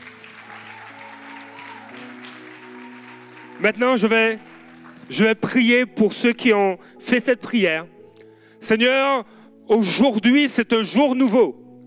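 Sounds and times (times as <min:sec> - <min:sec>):
audience applause: 0:00.0 - 0:05.5
speech: 0:03.6 - 0:04.5, 0:05.1 - 0:08.0, 0:08.6 - 0:11.6.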